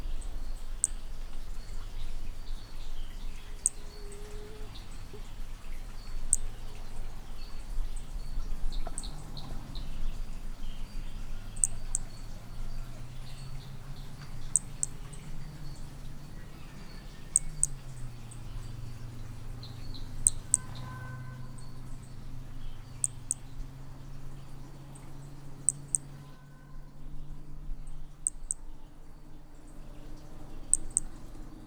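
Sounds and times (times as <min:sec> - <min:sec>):
low droning hum: 0:00.0 - 0:31.6
soft background chirps: 0:00.0 - 0:31.6
Hermogenes' toadlet giving high clicks: 0:13.2 - 0:18.4, 0:19.8 - 0:20.9, 0:25.6 - 0:26.2, 0:28.2 - 0:28.6, 0:30.7 - 0:31.2.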